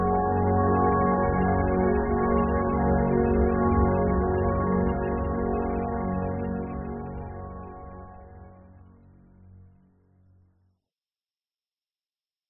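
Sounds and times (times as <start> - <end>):
big ethereal orchestral music: 0.0 - 8.7.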